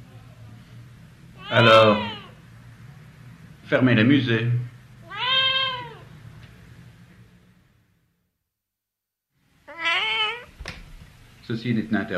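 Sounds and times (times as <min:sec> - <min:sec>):
cat meowing: 0:01.4 - 0:02.4, 0:05.0 - 0:06.1, 0:09.6 - 0:10.6
speech: 0:01.5 - 0:02.1, 0:03.7 - 0:04.7, 0:11.5 - 0:12.1.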